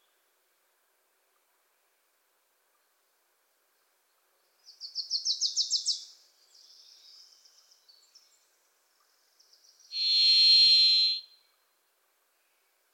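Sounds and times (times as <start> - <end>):
bird chips and twittering: 9.9 - 11.2.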